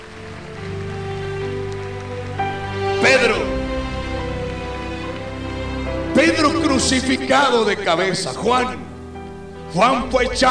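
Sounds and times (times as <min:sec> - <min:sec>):
audience clapping hands: 0:00.0 - 0:08.0
speech: 0:03.0 - 0:03.6, 0:06.2 - 0:08.8, 0:09.7 - 0:10.4.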